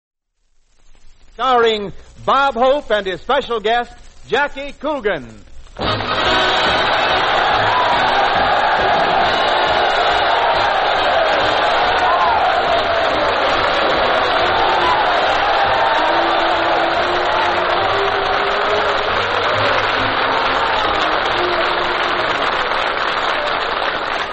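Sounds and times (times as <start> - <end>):
speech: 1.4 - 6.4
studio audience applause: 5.8 - 24.3
cheers and whoops: 6.0 - 24.3.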